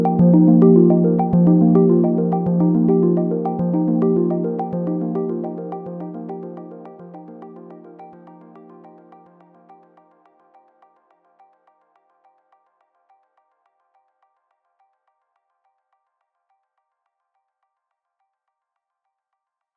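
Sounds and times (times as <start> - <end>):
detuned square wave arpeggio: 0.0 - 8.8.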